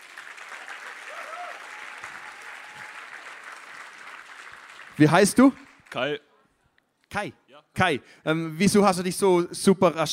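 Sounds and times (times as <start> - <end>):
audience applause: 0.0 - 6.1
speech: 5.0 - 6.2, 7.1 - 10.1.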